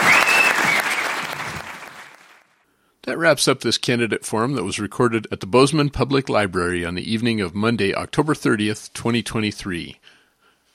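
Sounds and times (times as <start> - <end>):
audience applause at a candidate forum in the Bozeman Public Library: 0.0 - 2.5
speech: 3.1 - 10.2.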